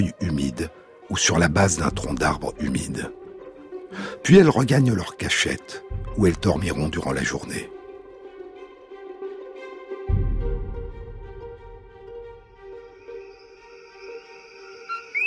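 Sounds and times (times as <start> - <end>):
speech: 0.0 - 3.2, 3.9 - 7.8
Eleutherodactylus coqui frog males calling at night: 13.2 - 15.2.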